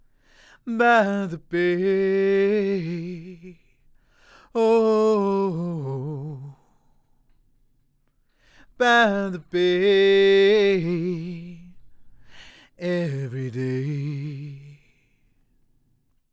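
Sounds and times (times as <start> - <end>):
a cappella singing: 0.6 - 3.8, 4.4 - 6.9, 8.6 - 15.2.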